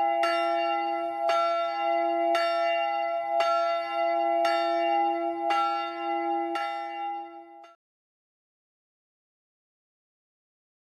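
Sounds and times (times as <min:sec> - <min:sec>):
church bell ringing in Klaaswaal village church: 0:00.0 - 0:07.8.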